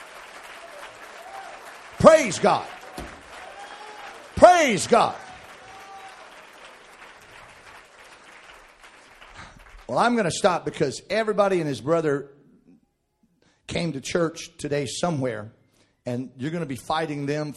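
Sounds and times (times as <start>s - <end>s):
audience clapping hands: 0.0s - 10.6s
speech: 2.0s - 2.8s, 4.4s - 5.2s, 9.9s - 12.4s, 13.7s - 17.5s.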